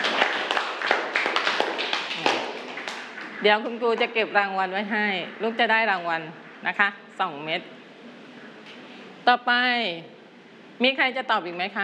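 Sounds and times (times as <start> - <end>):
people clapping in a classroom: 0.0 - 4.5
speech: 3.4 - 7.8, 9.3 - 10.2, 10.8 - 11.8.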